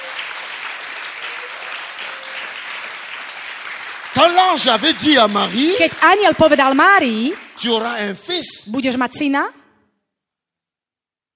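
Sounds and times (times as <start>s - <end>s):
church congregation clapping for Jesus: 0.0s - 8.8s
speech: 4.2s - 9.6s.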